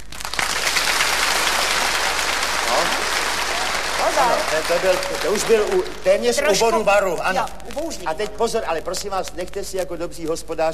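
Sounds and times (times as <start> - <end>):
warm applause: 0.0 - 7.2
speech: 4.2 - 10.7.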